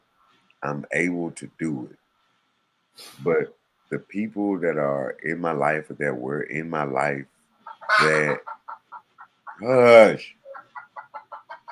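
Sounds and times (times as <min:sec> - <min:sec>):
speech: 0:00.6 - 0:02.0, 0:03.0 - 0:08.5, 0:09.6 - 0:10.4
chicken squawk inside a house: 0:07.6 - 0:09.7, 0:10.4 - 0:11.6
chickens clucking inside a house: 0:07.6 - 0:11.6.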